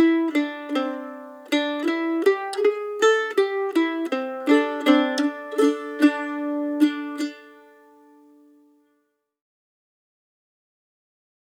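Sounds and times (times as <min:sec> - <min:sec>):
practice music track in D minor: 0:00.0 - 0:08.7.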